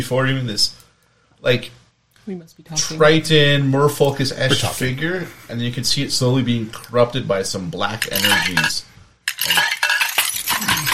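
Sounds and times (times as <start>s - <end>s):
speech: 0.0s - 0.8s, 1.4s - 9.8s
dishes breaking: 8.0s - 10.9s.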